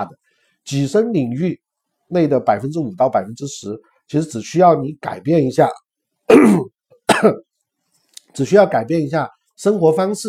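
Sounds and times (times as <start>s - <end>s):
speech: 0.0s - 7.5s, 8.3s - 10.2s
cough: 6.3s - 7.5s.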